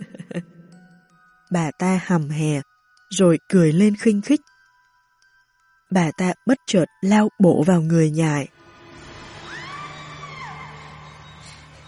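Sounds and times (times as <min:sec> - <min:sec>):
speech: 0:01.5 - 0:04.5, 0:05.9 - 0:08.6
steady low hum: 0:08.5 - 0:11.8
woman asleep at a dinner table screaming while dreaming: 0:09.4 - 0:11.3.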